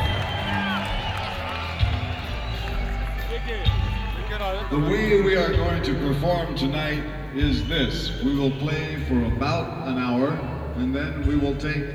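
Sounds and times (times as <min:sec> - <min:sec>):
audience applause: 0:00.0 - 0:05.5
crowd murmur: 0:00.0 - 0:11.9
speech: 0:04.4 - 0:11.9.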